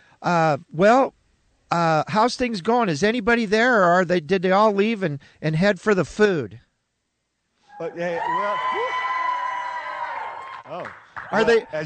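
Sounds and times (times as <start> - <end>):
speech: 0.2 - 6.6, 7.8 - 9.0, 10.7 - 11.8
crowd cheering and whooping: 7.7 - 11.7.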